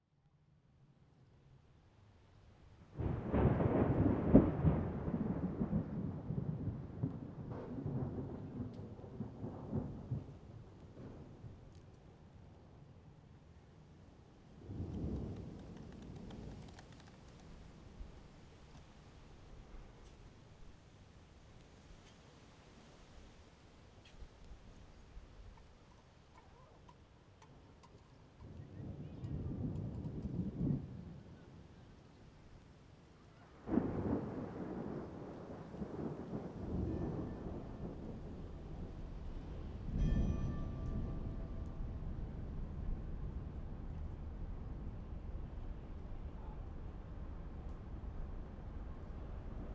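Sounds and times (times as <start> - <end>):
thunder: 3.0 - 11.7, 14.6 - 17.0, 28.5 - 31.5, 33.6 - 49.7.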